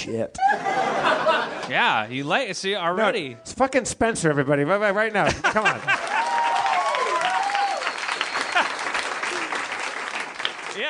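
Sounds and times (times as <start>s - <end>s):
speech: 0.1s - 6.0s
laughter: 0.4s - 1.7s, 5.2s - 6.6s, 8.4s - 9.7s
crowd applauding: 5.5s - 10.8s
sliding whoops and cheers: 6.0s - 9.7s.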